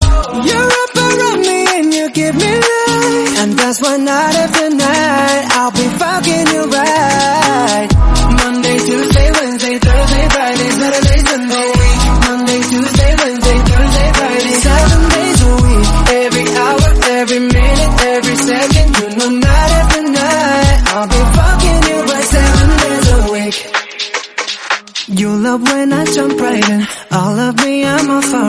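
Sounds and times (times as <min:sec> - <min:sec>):
explicit English song: 0:00.0 - 0:28.4.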